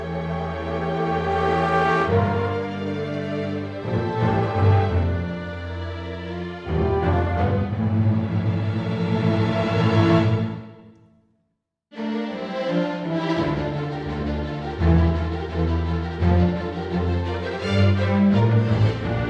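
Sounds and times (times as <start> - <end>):
orchestral music: 0.0 - 10.9, 12.0 - 19.2.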